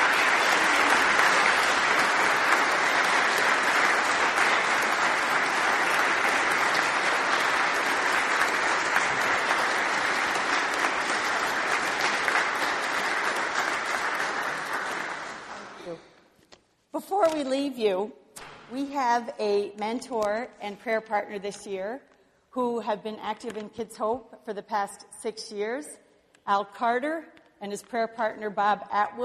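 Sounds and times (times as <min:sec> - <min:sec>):
warm round of applause: 0:00.0 - 0:15.9
speech: 0:17.4 - 0:29.2.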